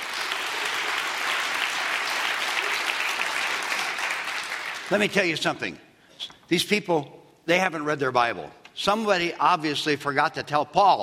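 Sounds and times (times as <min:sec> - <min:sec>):
audience applause: 0:00.0 - 0:05.1
speech: 0:04.9 - 0:11.0.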